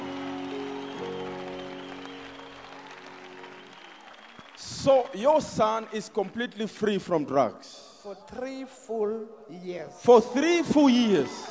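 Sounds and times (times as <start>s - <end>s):
audience clapping: 0.0s - 7.1s, 10.7s - 11.4s
speech: 4.6s - 11.4s.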